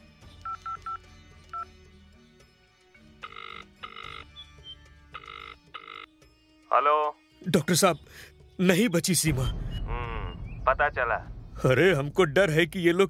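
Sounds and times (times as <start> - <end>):
phone keypad beeps dialing a number: 0.5 - 1.0, 3.2 - 6.1
speech: 6.8 - 9.6, 10.7 - 13.0.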